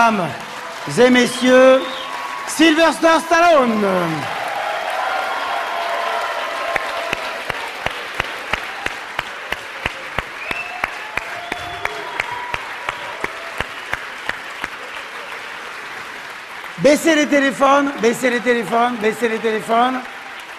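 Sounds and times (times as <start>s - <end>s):
speech: 0.0s - 4.4s, 16.8s - 20.1s
large crowd applauding a guest: 0.0s - 20.5s
whistles: 1.3s - 2.3s, 10.4s - 12.6s.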